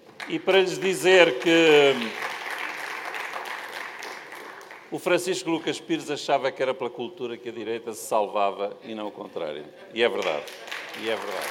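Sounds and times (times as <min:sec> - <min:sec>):
audience applause: 0:00.2 - 0:05.0, 0:10.4 - 0:11.5
speech: 0:00.3 - 0:02.2, 0:04.9 - 0:11.5.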